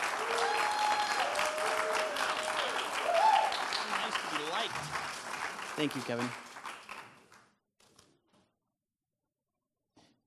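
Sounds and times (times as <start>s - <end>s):
audience applause welcoming a speaker at a gathering: 0.0s - 7.5s
speech: 5.8s - 6.4s.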